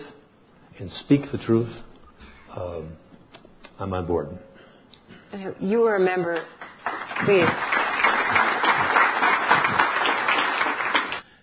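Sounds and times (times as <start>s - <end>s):
speech: 0.8s - 1.9s, 2.6s - 3.1s, 3.8s - 4.5s, 5.3s - 6.6s, 7.2s - 7.8s
audience applause: 6.6s - 11.2s.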